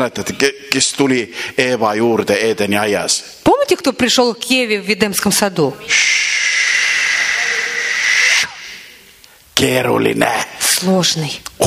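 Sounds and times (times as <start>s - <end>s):
speech: 0.0s - 6.8s, 9.6s - 11.6s
serpent hissing: 5.9s - 9.2s.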